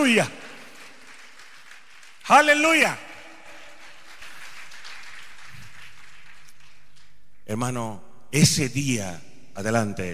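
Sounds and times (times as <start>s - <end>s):
speech: 0.0s - 0.4s, 2.3s - 3.1s, 7.5s - 10.1s
audience applause: 0.0s - 7.1s.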